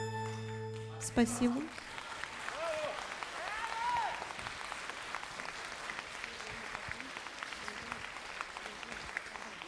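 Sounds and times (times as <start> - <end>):
audience applause: 0.2 - 9.6
speech: 1.1 - 1.8.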